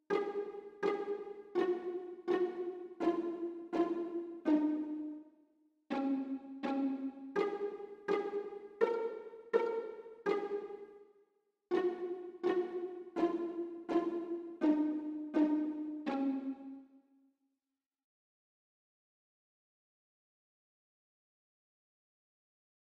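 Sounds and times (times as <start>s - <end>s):
violin and viola pizzicato: 0.0s - 5.2s, 5.9s - 11.0s, 11.7s - 16.9s.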